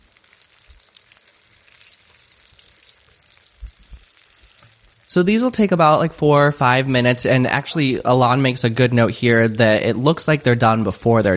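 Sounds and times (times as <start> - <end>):
batter fritters frying in oil: 0.0 - 11.3
speech: 5.2 - 11.3.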